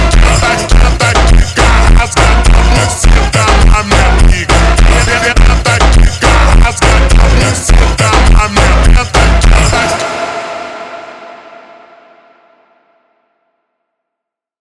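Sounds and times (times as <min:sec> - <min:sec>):
super slowed funk music: 0:00.0 - 0:10.3.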